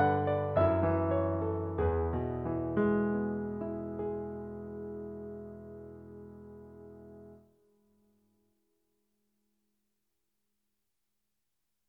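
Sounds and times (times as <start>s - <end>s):
Yamaha S80 synthesizer: 0.0s - 7.5s.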